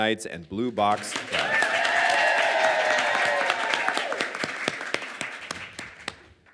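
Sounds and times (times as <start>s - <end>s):
speech: 0.0s - 1.6s
audience applause: 0.8s - 6.5s.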